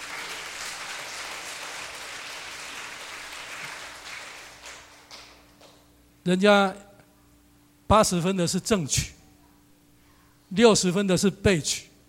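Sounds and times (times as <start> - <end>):
crowd applauding: 0.0 - 5.8
speech: 6.3 - 6.8, 7.9 - 9.2, 10.5 - 11.9.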